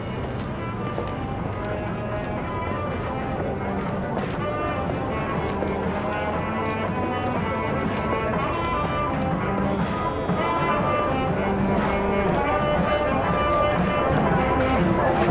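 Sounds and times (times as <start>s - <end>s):
saxophone in an open night club doorway: 0.2s - 15.2s.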